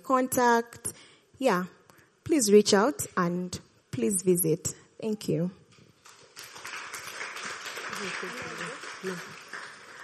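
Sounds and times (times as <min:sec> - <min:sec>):
speech: 0:00.1 - 0:05.6, 0:08.0 - 0:09.4
audience applause: 0:06.1 - 0:10.0.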